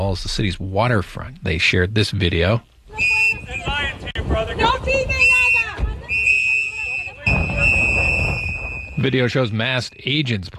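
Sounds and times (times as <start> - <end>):
speech: 0.1 - 3.6, 9.0 - 10.5
activists blowing whistles: 2.9 - 3.9, 5.1 - 9.1
activists shouting: 4.6 - 7.7.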